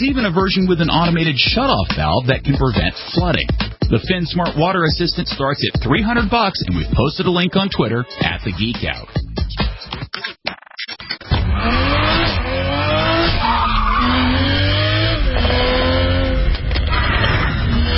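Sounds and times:
speech: 0.0s - 9.7s
sports car engine revving: 11.3s - 17.9s
tires squealing and skidding: 11.3s - 17.9s.

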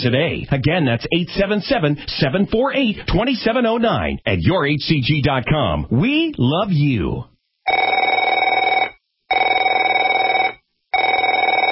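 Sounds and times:
speech: 0.0s - 8.0s
telephone ringing: 7.7s - 11.7s.

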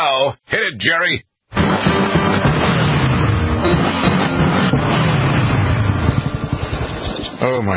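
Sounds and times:
speech: 0.2s - 2.1s, 7.4s - 7.7s
motorcycle engines roaring together: 1.6s - 7.6s.

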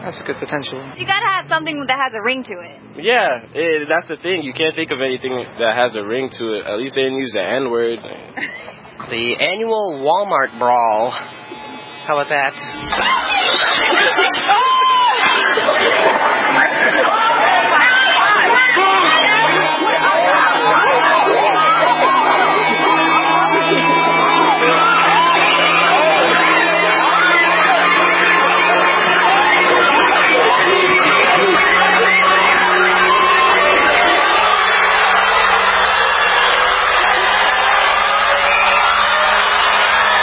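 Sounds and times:
speech: 0.0s - 11.4s, 12.0s - 15.7s
crowd roaring and shouting: 0.6s - 2.9s, 9.5s - 40.2s
laughter: 8.4s - 8.9s, 12.9s - 40.2s.

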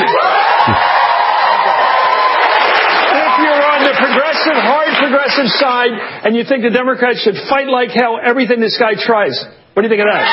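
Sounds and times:
large crowd cheering and shouting: 0.0s - 4.2s, 10.1s - 10.3s
speech: 5.4s - 10.3s.

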